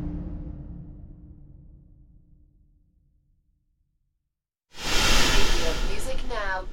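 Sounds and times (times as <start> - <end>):
space whooshes: 4.8 - 6.5.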